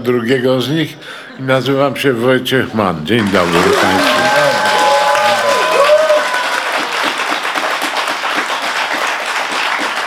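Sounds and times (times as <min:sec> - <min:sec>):
speech: 0:00.0 - 0:04.3
audience applause: 0:03.1 - 0:10.0.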